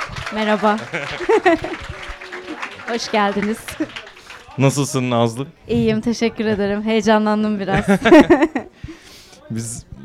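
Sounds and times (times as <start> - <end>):
welcoming applause: 0.0 - 5.1
voices calling out and cheering: 0.0 - 5.2
speech: 0.3 - 2.0, 2.9 - 8.6, 9.5 - 9.9
laughter: 0.4 - 4.6, 7.7 - 8.8.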